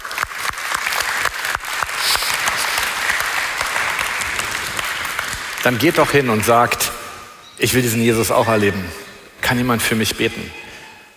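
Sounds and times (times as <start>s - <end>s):
audience applause: 0.0s - 6.9s
speech: 5.6s - 7.0s, 7.6s - 10.6s.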